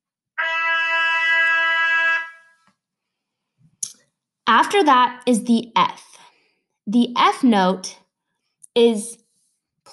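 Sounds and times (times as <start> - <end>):
trumpet holding the note E: 0.4 - 2.6
speech: 4.5 - 6.1, 6.9 - 8.0, 8.8 - 9.2.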